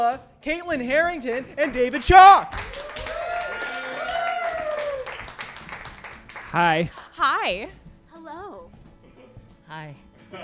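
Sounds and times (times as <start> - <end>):
speech: 0.0 - 3.1, 6.5 - 8.4, 9.7 - 10.4
audience applause welcoming five introduced speakers: 2.5 - 6.9
person whooping: 2.8 - 5.2.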